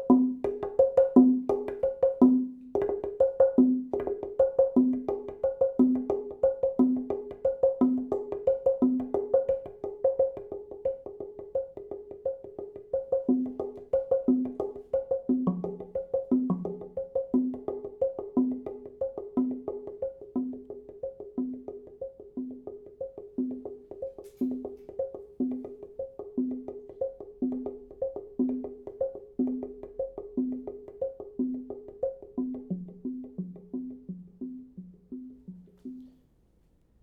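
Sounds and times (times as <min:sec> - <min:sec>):
Prehispanic percussion: 0:00.0 - 0:36.4.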